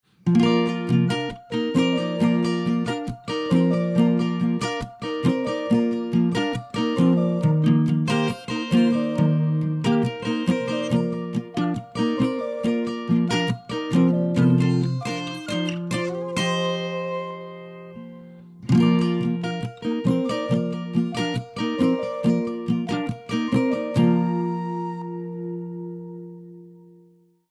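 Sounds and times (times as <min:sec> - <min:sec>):
happy country music: 0:00.3 - 0:25.6.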